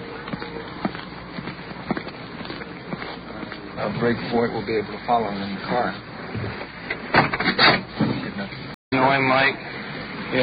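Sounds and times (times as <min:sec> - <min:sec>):
footsteps crossing a street: 0:00.0 - 0:04.8
wind: 0:00.0 - 0:10.4
speech: 0:03.8 - 0:06.6, 0:09.1 - 0:09.7.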